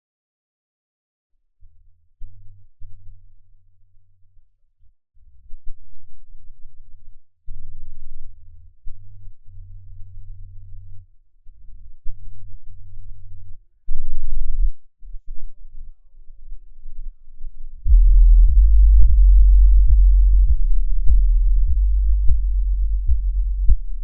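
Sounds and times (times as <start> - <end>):
bass boosted music: 17.9 - 24.0.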